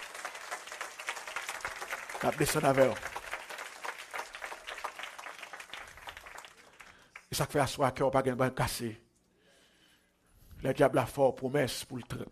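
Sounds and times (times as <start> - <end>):
audience applause: 0.0 - 7.3
speech: 2.2 - 3.1, 7.4 - 9.0, 10.6 - 12.3.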